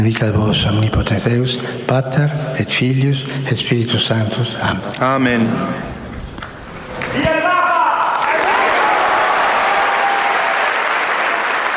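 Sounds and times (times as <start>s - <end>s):
speech: 0.0s - 6.0s
big applause in an audience hall: 6.8s - 11.7s.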